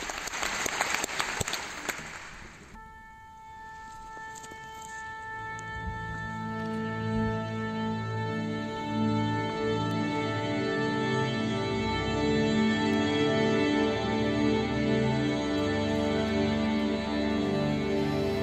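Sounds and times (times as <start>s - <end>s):
concert audience applause: 0.0s - 2.8s
sustained instrumental tones: 2.8s - 18.4s.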